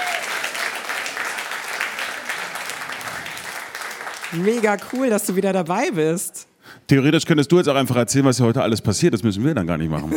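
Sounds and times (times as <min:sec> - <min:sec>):
audience applause: 0:00.0 - 0:05.3
speech: 0:04.3 - 0:10.1.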